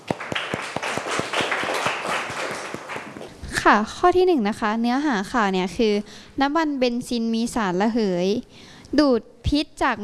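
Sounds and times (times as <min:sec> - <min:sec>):
group of people clapping in a classroom: 0:00.0 - 0:03.4
speech: 0:03.7 - 0:10.0.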